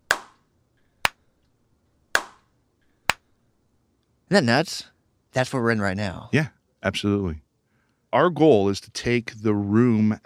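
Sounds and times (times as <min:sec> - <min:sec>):
hand clap: 0:00.0 - 0:00.4, 0:02.2 - 0:02.4
speech: 0:04.3 - 0:07.4, 0:08.1 - 0:10.2.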